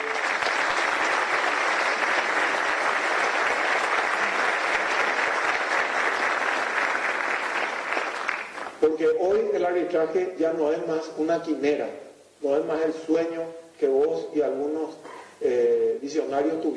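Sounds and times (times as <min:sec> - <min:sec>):
loud audience applause: 0:00.0 - 0:08.8
speech: 0:09.0 - 0:16.7.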